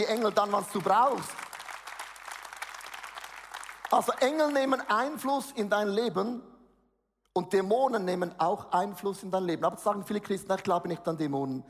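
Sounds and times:
speech: 0:00.0 - 0:01.4, 0:03.9 - 0:06.5, 0:07.4 - 0:11.6
audience applause: 0:00.0 - 0:04.8.

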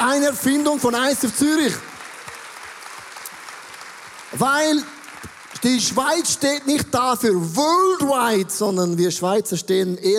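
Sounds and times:
speech: 0:00.0 - 0:01.9, 0:04.3 - 0:05.0, 0:05.6 - 0:10.1
large crowd applauding: 0:00.0 - 0:07.5.

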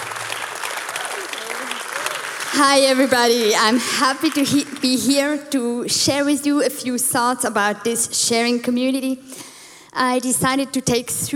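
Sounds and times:
audience round of applause: 0:00.0 - 0:05.0
speech: 0:02.5 - 0:11.3.

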